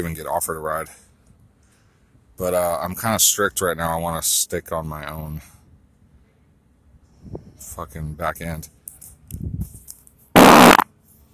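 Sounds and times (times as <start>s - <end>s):
speech: 0.0s - 1.1s, 2.4s - 5.6s, 7.3s - 9.8s
fart: 10.4s - 10.8s.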